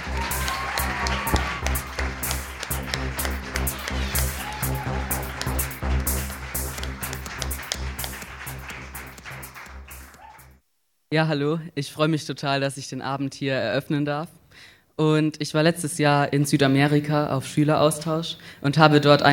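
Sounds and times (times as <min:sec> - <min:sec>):
audience applause: 0:00.0 - 0:10.6
crowd cheering: 0:00.0 - 0:10.6
speech: 0:11.1 - 0:19.3.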